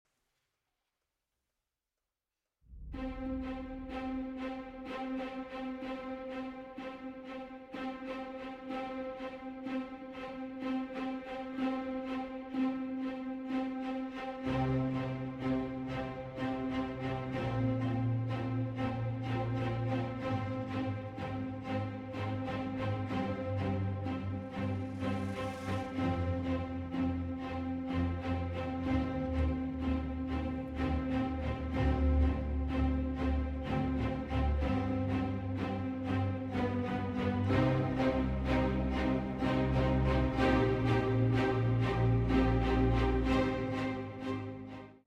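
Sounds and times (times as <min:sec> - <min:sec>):
orchestral music: 0:02.7 - 0:45.0.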